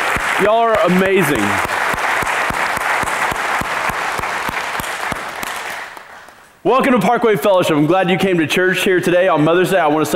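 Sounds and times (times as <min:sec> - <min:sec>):
audience applause: 0:00.0 - 0:06.4
speech: 0:00.4 - 0:01.7, 0:06.6 - 0:10.1.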